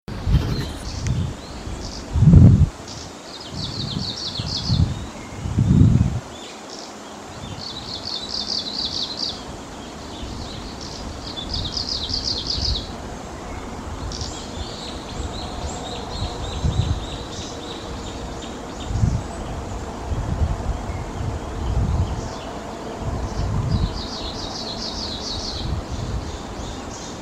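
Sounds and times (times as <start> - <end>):
Japanese leaf warbler: 0.2 - 27.1.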